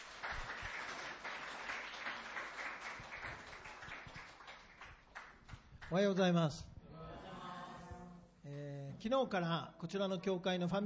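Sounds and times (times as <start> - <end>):
audience applause welcoming speaker: 0.0 - 5.4
speech: 5.9 - 6.7, 8.5 - 10.8.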